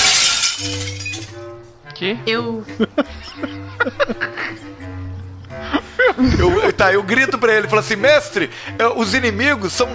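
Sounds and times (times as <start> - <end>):
glass pieces tinkling: 0.0 - 1.5
stained glass window shattering: 0.0 - 1.5
speech: 1.9 - 4.8, 5.6 - 9.9
laughter: 2.8 - 7.9.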